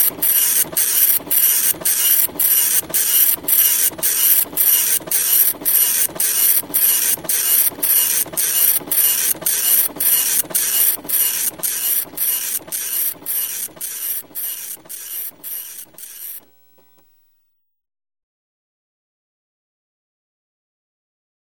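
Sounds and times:
computer printer printing: 0.0s - 17.0s.

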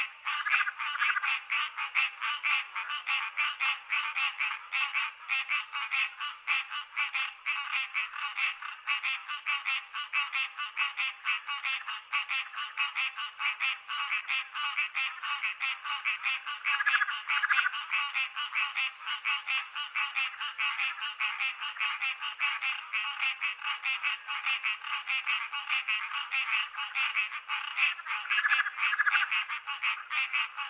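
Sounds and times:
Southern leopard frog calling: 0.0s - 30.6s
insects: 0.0s - 30.6s.

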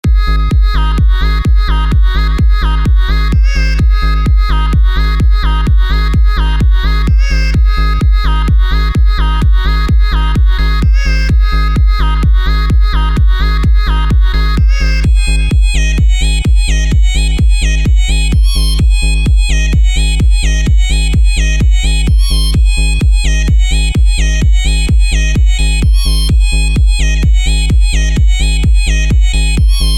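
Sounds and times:
sampled synth music: 0.0s - 29.9s.

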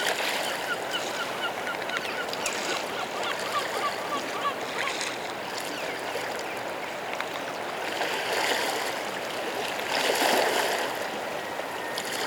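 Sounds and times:
coastal nature sounds: 0.0s - 12.2s.

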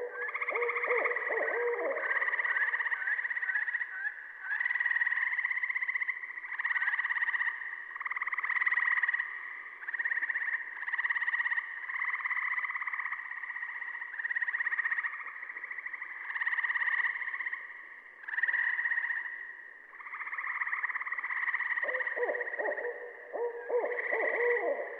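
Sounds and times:
Saw-whet Owl calling: 0.0s - 2.8s, 21.7s - 24.9s
Gray Treefrog calling: 0.0s - 24.9s.

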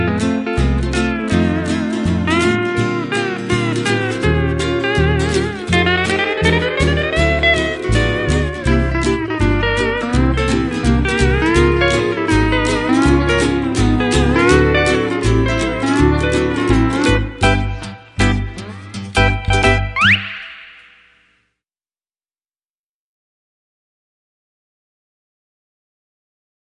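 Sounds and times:
lap steel guitar playing hula blues: 0.0s - 20.0s.

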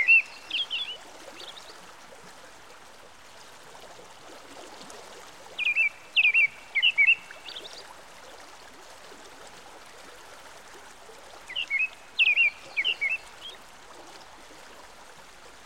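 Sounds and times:
American robin song by a stream: 0.0s - 1.7s, 5.6s - 7.8s, 11.5s - 13.6s.

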